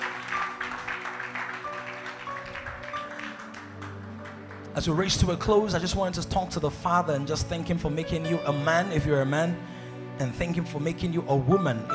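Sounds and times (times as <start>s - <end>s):
slow audience clapping: 0.0s - 5.9s
speech: 4.8s - 11.9s.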